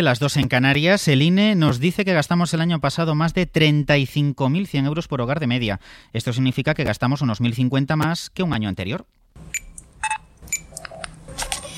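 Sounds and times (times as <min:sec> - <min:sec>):
speech: 0:00.0 - 0:09.6
supermarket checkout electronic beeps: 0:09.5 - 0:10.8.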